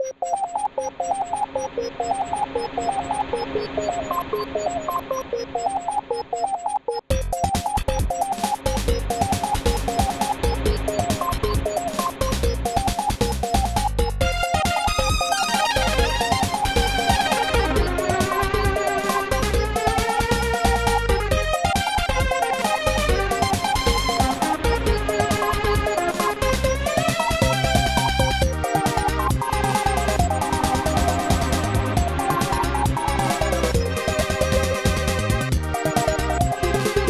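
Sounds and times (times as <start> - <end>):
chiptune music: 0.0 - 37.0.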